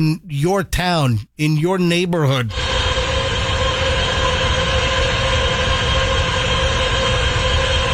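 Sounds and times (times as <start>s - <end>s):
speech: 0.0s - 2.7s
data center loud mechanical drone heard from outside its fence: 2.5s - 7.9s.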